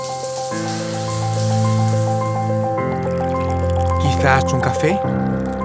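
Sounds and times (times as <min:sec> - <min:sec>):
shower water running: 0:00.0 - 0:04.1
speech: 0:04.2 - 0:05.5.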